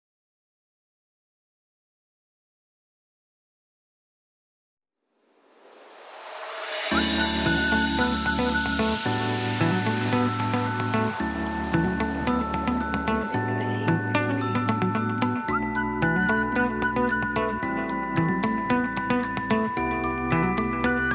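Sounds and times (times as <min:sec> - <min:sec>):
chill funky house music: 0:06.9 - 0:21.1.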